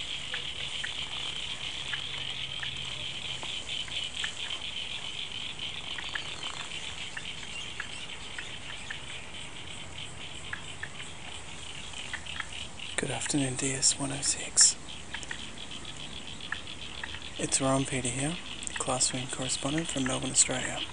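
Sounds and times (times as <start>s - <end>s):
many frogs calling together: 0.0s - 20.9s
speech: 13.1s - 14.8s, 17.4s - 20.9s.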